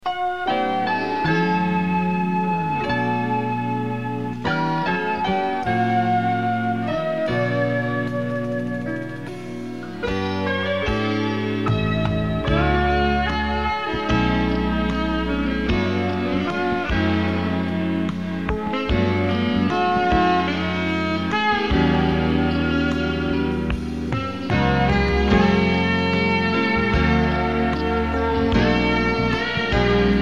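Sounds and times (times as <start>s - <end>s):
soft instrumental music: 0.0s - 30.2s.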